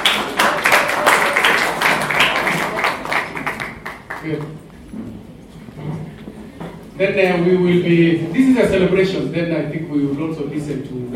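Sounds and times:
audience clapping: 0:00.0 - 0:04.8
speech: 0:04.2 - 0:05.1, 0:07.0 - 0:11.1.

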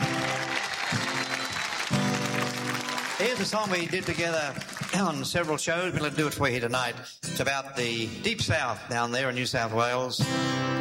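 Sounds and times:
audience applause welcoming a singer at a concert: 0:00.0 - 0:05.6
speech: 0:03.2 - 0:10.8.

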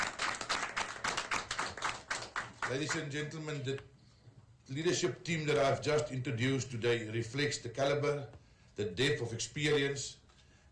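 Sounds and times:
people applauding a police general during a leadership introduction in Limpopo Province: 0:00.0 - 0:03.4
speech: 0:02.7 - 0:04.0, 0:04.7 - 0:10.2.

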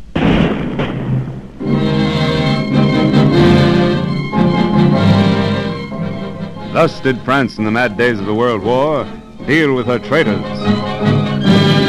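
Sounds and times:
firing squad rifle volley at a French execution: 0:00.0 - 0:02.3
orchestral music: 0:01.6 - 0:11.8
speech: 0:06.8 - 0:11.2.

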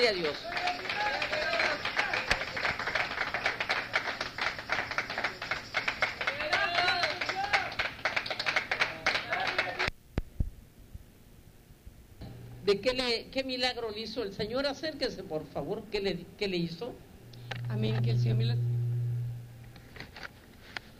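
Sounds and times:
speech: 0:00.0 - 0:00.9, 0:12.7 - 0:17.1, 0:17.7 - 0:18.7
audience applauding: 0:00.0 - 0:09.9.

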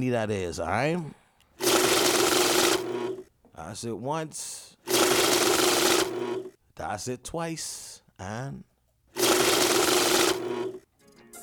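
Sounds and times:
speech: 0:00.0 - 0:01.2, 0:03.6 - 0:05.5, 0:06.2 - 0:08.7
money counting machine counting banknotes: 0:01.6 - 0:03.3, 0:04.9 - 0:06.5, 0:09.2 - 0:10.8.

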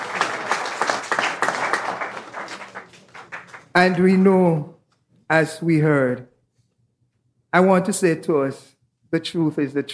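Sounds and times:
audience clapping at the close of an evening event: 0:00.0 - 0:04.2
speech: 0:03.8 - 0:06.3, 0:07.5 - 0:09.9.

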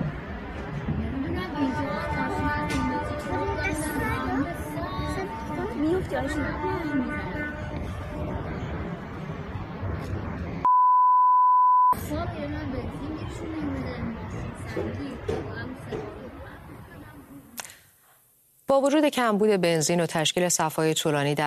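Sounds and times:
murmur of voices: 0:00.0 - 0:10.6, 0:12.0 - 0:17.6
car horns honking in protest: 0:02.0 - 0:08.9
flat electronic beep: 0:10.6 - 0:12.0
speech: 0:18.8 - 0:21.4.

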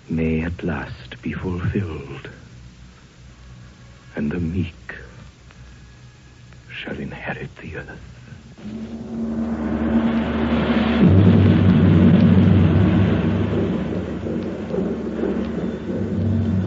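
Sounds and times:
speech: 0:00.1 - 0:02.5, 0:04.2 - 0:04.9, 0:06.8 - 0:09.8
approaching storm thunder: 0:08.6 - 0:16.6.

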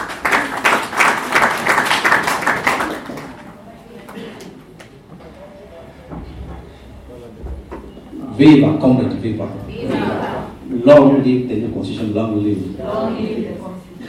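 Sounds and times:
audience clapping: 0:00.0 - 0:04.9
speech: 0:08.4 - 0:10.0, 0:10.7 - 0:13.8.

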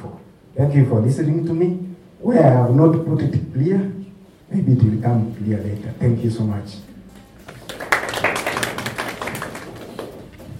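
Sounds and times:
speech: 0:00.6 - 0:06.9
people applauding: 0:07.4 - 0:10.5.

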